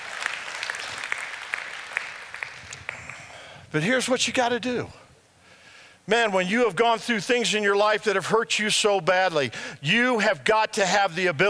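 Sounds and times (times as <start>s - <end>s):
audience clapping: 0.0s - 3.6s
speech: 3.7s - 5.0s, 6.1s - 11.4s.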